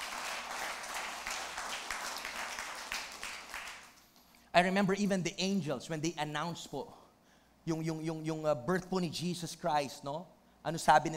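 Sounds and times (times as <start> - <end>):
church congregation applauding: 0.0 - 4.0
speech: 4.6 - 7.0, 7.7 - 11.1.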